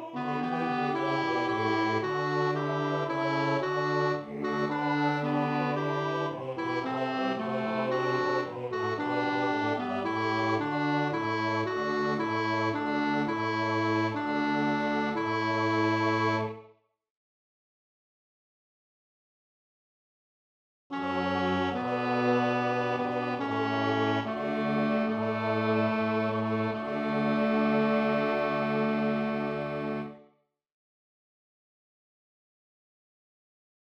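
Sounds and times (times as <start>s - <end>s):
tenor singing: 0.0s - 16.4s, 21.0s - 30.0s.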